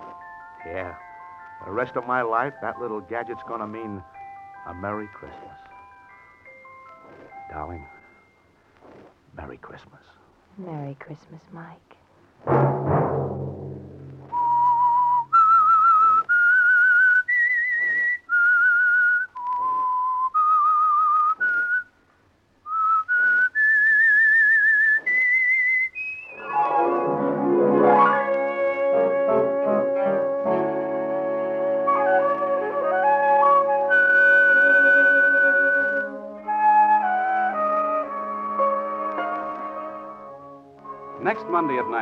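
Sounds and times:
whistled theme melody: 0.0s - 8.6s, 14.2s - 21.9s, 22.7s - 41.9s
speech: 0.6s - 5.6s, 7.5s - 7.9s, 9.4s - 13.5s
orchestral swell with brass and strings: 26.4s - 41.9s.

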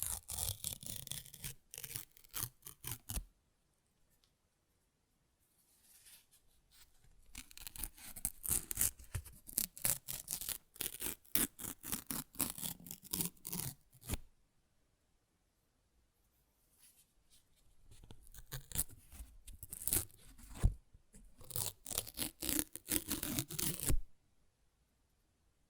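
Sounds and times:
paper ripping and tearing: 0.0s - 3.2s, 7.3s - 14.2s, 18.1s - 20.6s, 21.4s - 24.0s.

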